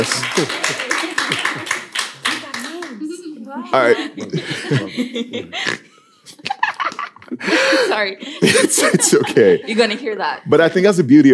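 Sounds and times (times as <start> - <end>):
speech: 0.0 - 1.8, 3.6 - 6.4, 7.3 - 11.3
laughter: 0.0 - 2.6, 3.7 - 10.4
audience applause: 0.0 - 3.1.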